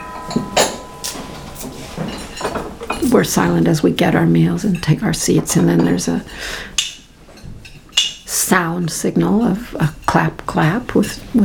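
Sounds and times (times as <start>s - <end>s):
metal umpan gong struck to announce meals: 0.0s - 2.8s
speech: 3.1s - 6.7s, 8.5s - 11.4s.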